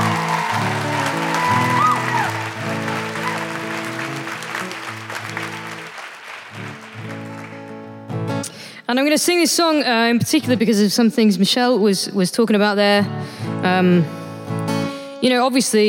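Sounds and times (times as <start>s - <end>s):
audience applause: 0.0s - 8.1s
speech: 8.9s - 14.2s, 15.2s - 15.8s.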